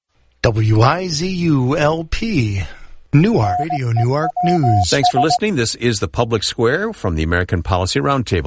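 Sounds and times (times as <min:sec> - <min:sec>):
speech: 0:00.5 - 0:08.4
radio time signal beep at the top of the hour: 0:03.4 - 0:05.4
radio time signal ticks: 0:03.6 - 0:05.4.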